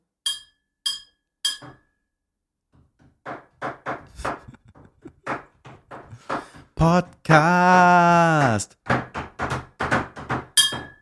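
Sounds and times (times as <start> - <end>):
glass being clinked: 0.3 - 1.9, 10.6 - 10.9
laughter: 4.1 - 5.3
speech: 6.8 - 8.8.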